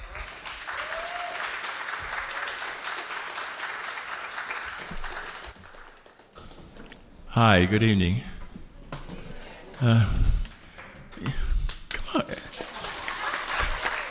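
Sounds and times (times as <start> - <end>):
faint voices and whoops: 0.0 - 1.6
crowd applause: 0.0 - 6.6, 11.7 - 14.1
speech: 7.4 - 8.3, 9.8 - 10.3.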